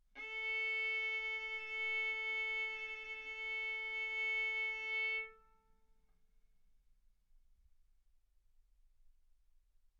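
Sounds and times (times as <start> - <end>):
violin arco on A string: 0.2 - 5.4.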